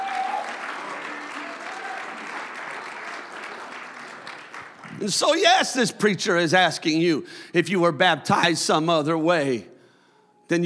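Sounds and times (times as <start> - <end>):
audience clapping hands: 0.0 - 5.8
speech: 5.0 - 9.7, 10.5 - 10.6.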